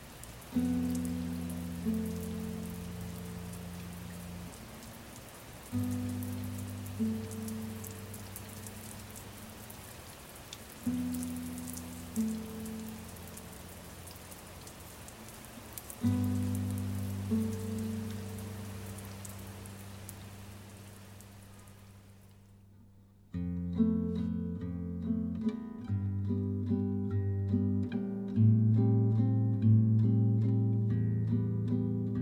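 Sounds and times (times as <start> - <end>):
steady rain: 0.0 - 22.6, 23.4 - 32.2.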